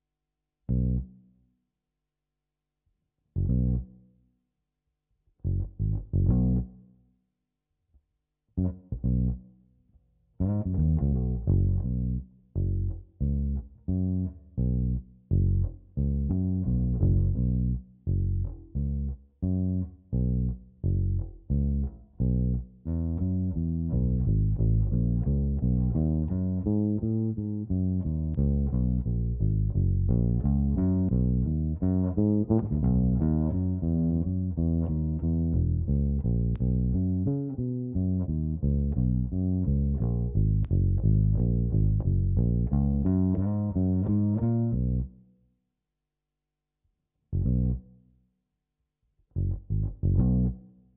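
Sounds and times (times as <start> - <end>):
clean bass: 0.7 - 1.4, 3.3 - 4.2, 5.3 - 7.0, 8.5 - 45.2, 47.3 - 48.0, 49.2 - 50.9.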